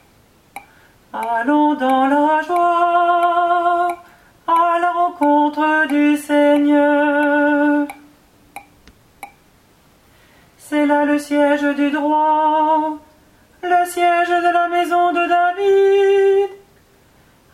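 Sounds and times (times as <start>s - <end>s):
alto singing a psalm: 0.6s - 8.1s, 10.6s - 16.7s.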